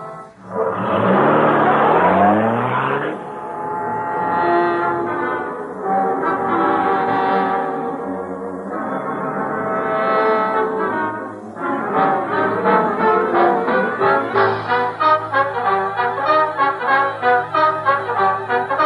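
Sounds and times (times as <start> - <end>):
droning horn-like tones: 0.0 - 18.8
taxi engine revving and pulling away: 0.4 - 5.5.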